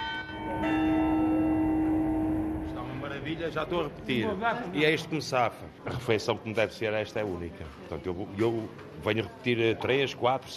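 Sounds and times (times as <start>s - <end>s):
church clock bell ringing: 0.0s - 3.7s
speech: 3.3s - 10.5s.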